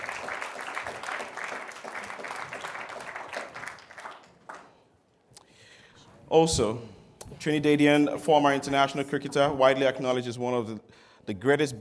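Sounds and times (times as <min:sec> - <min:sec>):
audience applause: 0:00.0 - 0:04.8
speech: 0:06.3 - 0:11.8.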